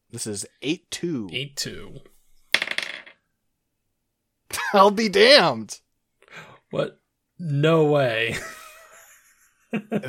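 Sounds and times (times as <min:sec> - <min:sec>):
speech: 0:00.1 - 0:02.1, 0:04.7 - 0:08.6, 0:09.7 - 0:10.0
dice rolled for a match-up: 0:02.5 - 0:03.2.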